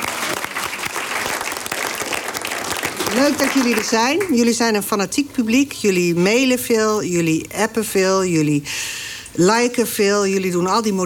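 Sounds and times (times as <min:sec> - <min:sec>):
audience applause: 0:00.0 - 0:04.4
speech: 0:03.1 - 0:11.0.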